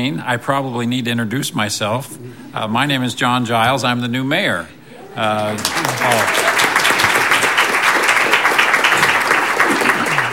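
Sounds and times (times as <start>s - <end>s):
speech: 0.0s - 6.4s
audience applause: 5.0s - 10.3s.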